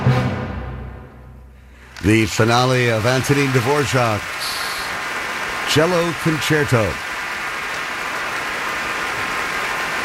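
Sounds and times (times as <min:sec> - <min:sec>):
concert crowd applause after concerto finale: 0:01.8 - 0:10.0
speech: 0:02.0 - 0:04.6, 0:05.7 - 0:07.1.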